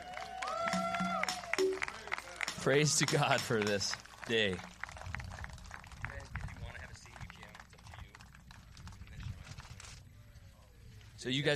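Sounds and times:
audience clapping: 0.0s - 9.2s
speech: 2.6s - 4.8s, 11.2s - 11.5s.

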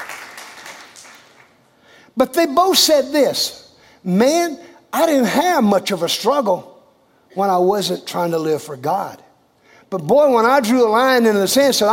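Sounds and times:
audience hand clapping of praise: 0.0s - 1.7s
speech: 2.2s - 6.7s, 7.4s - 9.2s, 9.9s - 11.9s.

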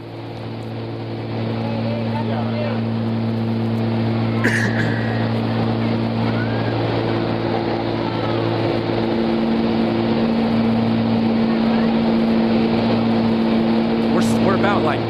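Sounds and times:
aircraft making low pass over runway: 0.0s - 15.0s.

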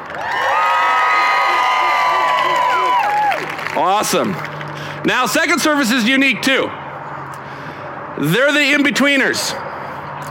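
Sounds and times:
crowd shouting and applauding: 0.0s - 5.0s
speech: 3.8s - 6.8s, 8.2s - 9.6s.

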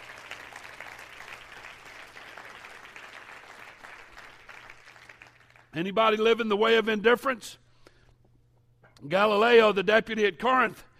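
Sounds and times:
crowd clapping: 0.0s - 5.8s
low steady hum: 0.0s - 10.9s
speech: 5.8s - 7.6s, 9.0s - 10.9s.

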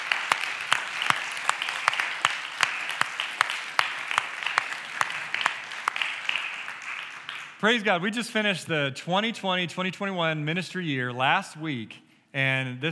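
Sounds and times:
audience applause: 0.0s - 7.6s
speech: 7.6s - 12.9s.

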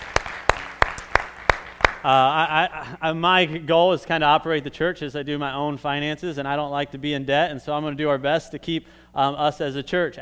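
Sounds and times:
audience clapping: 0.0s - 2.3s
speech: 2.0s - 10.2s.

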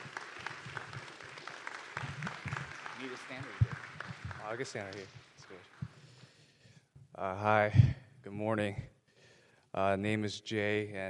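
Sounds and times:
audience clapping: 0.0s - 6.5s
speech: 3.1s - 3.6s, 4.5s - 5.2s, 7.2s - 8.9s, 9.8s - 11.0s.

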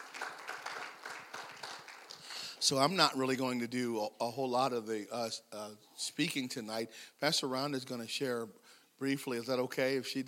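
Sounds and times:
audience hand clapping: 0.0s - 2.6s
speech: 2.6s - 10.2s.

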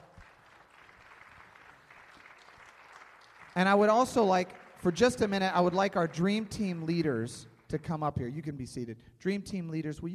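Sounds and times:
audience applause: 0.0s - 7.0s
speech: 3.6s - 10.1s.

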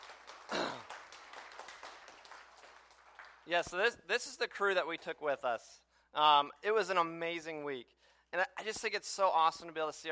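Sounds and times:
audience applause for students: 0.0s - 3.9s
speech: 3.5s - 10.1s.

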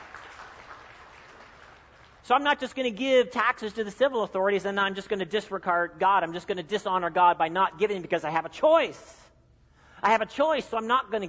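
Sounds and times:
people clapping: 0.0s - 2.3s
speech: 2.3s - 9.2s, 10.0s - 11.2s.

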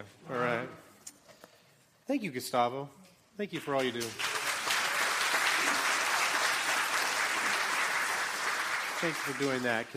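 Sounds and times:
speech: 2.1s - 4.3s, 9.0s - 9.9s
audience applause: 3.8s - 9.9s.

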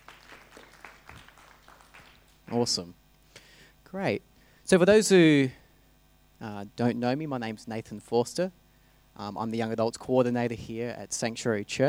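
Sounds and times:
audience clapping: 0.0s - 2.8s
speech: 2.5s - 3.0s, 3.9s - 5.6s, 6.4s - 8.6s, 9.2s - 11.8s.

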